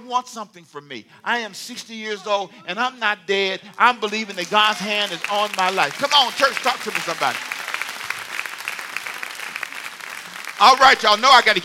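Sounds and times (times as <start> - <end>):
speech: 0.1 - 7.6, 10.6 - 11.6
crowd clapping: 3.7 - 11.6.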